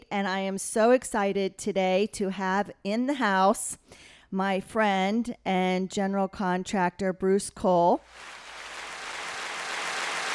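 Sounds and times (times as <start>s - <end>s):
speech: 0.1s - 8.4s
crowd applause sound effect: 8.1s - 10.3s.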